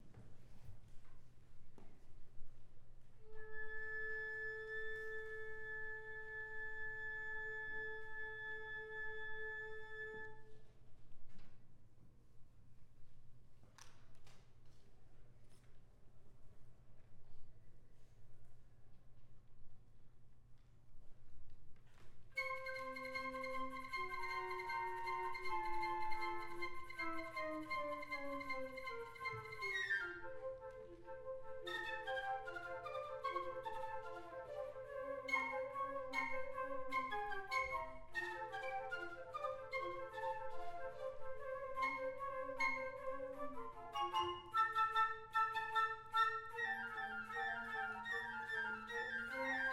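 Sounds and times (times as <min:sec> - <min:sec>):
flute choir: 0:03.1 - 0:10.8, 0:22.4 - 0:49.7
orchestra: 0:03.2 - 0:10.6, 0:22.4 - 0:49.7.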